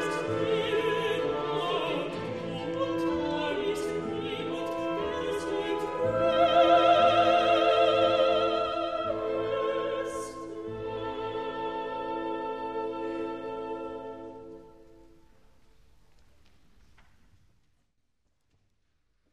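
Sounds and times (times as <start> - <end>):
duet with choir: 0.0 - 15.0.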